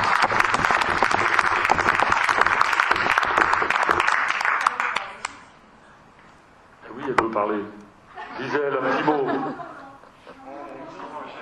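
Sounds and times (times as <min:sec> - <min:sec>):
audience applause: 0:00.0 - 0:05.3
laughter: 0:08.1 - 0:11.4.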